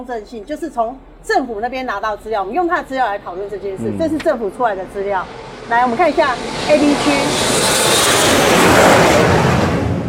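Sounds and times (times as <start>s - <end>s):
speech: 0.0s - 9.3s
airplane flying low overhead: 3.1s - 10.0s.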